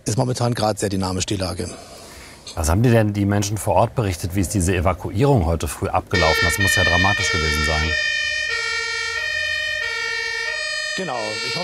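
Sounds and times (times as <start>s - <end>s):
speech: 0.1s - 8.2s, 11.0s - 11.6s
fire engine siren as the truck passes along a road: 6.1s - 11.6s.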